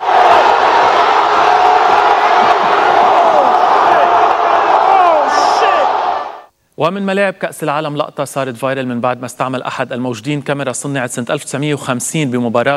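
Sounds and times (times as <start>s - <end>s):
Colombian football fans roaring in stadium stands: 0.0s - 6.5s
speech: 6.8s - 12.7s.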